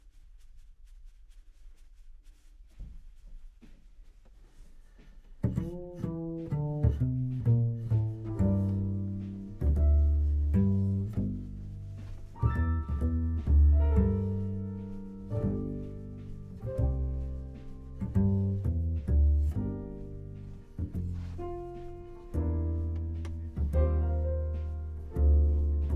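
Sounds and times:
contrabass: 5.3 - 25.9.

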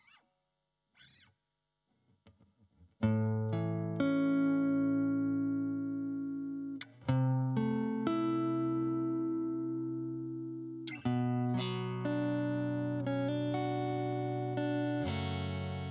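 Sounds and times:
guitar: 0.0 - 0.2, 1.0 - 1.3, 2.1 - 15.8.

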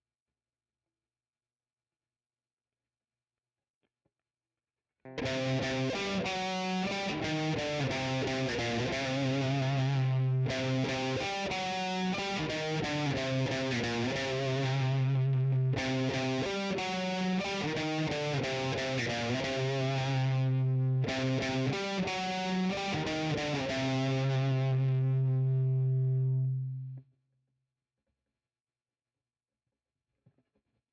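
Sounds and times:
guitar: 5.1 - 27.0.

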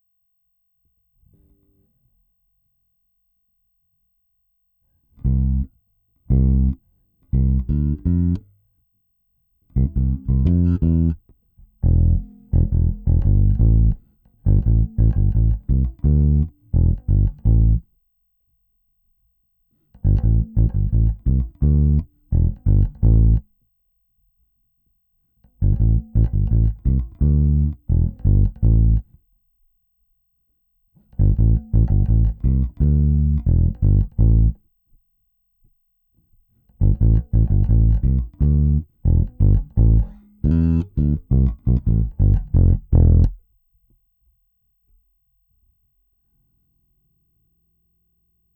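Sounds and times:
bass: 5.1 - 8.6, 9.7 - 17.9, 19.9 - 23.6, 25.4 - 29.2, 31.0 - 34.6, 36.6 - 43.5.

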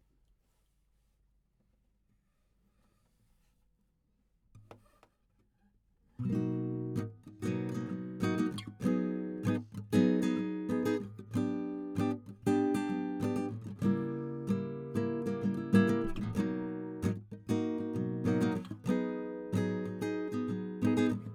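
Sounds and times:
guitar: 6.2 - 21.3.

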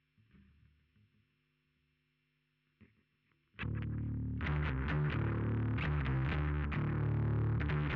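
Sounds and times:
bass guitar through SansAmp: 3.6 - 7.9.

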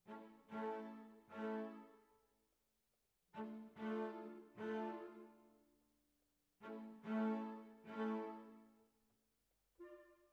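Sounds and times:
cellos playing: 0.1 - 1.8, 3.4 - 5.4, 6.6 - 8.6.

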